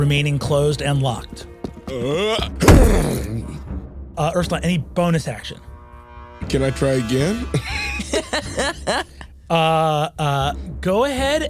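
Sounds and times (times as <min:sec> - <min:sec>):
speech: 0:00.0 - 0:03.6, 0:04.2 - 0:05.7, 0:06.4 - 0:11.4
shoulder slamming into locked door: 0:02.6 - 0:03.3
laughter: 0:07.5 - 0:09.3.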